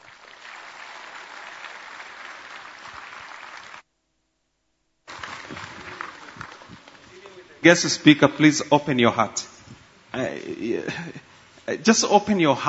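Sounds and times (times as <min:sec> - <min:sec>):
church audience applause welcoming a guest speaker: 0:00.0 - 0:03.8, 0:05.1 - 0:07.7
speech: 0:07.6 - 0:09.5, 0:10.6 - 0:12.6.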